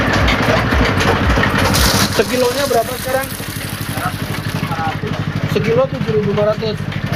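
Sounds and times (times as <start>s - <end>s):
pressing machine running with low motor drone: 0.1s - 5.5s
speech: 2.2s - 3.5s, 5.6s - 7.0s.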